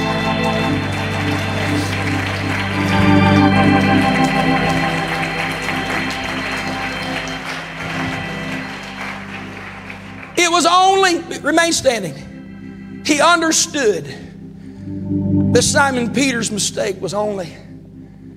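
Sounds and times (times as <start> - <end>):
audience clapping hands: 0.0 - 12.0
speech: 11.4 - 12.3, 13.1 - 14.3, 15.5 - 17.7.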